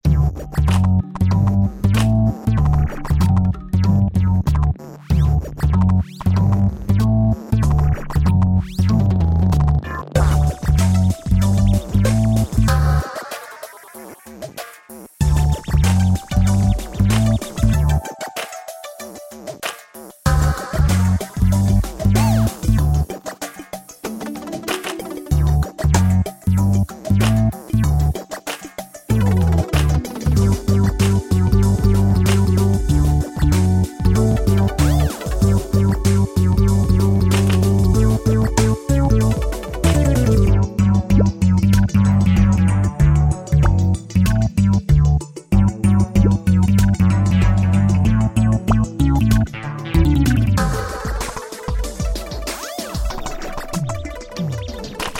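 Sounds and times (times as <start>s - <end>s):
robot music: 0.0s - 14.5s, 15.2s - 55.1s.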